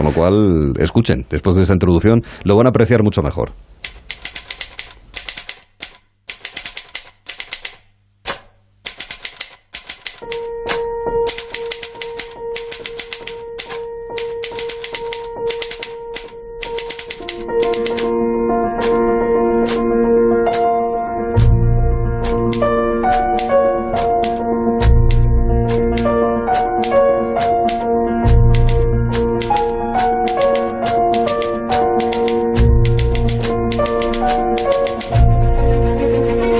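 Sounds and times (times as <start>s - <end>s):
speech: 0.1s - 3.7s
rhythmic typewriter key clacks: 3.8s - 18.1s, 18.8s - 19.0s, 19.6s - 19.9s, 20.5s - 20.7s, 22.2s - 35.2s
bright orchestral melody: 10.2s - 36.5s.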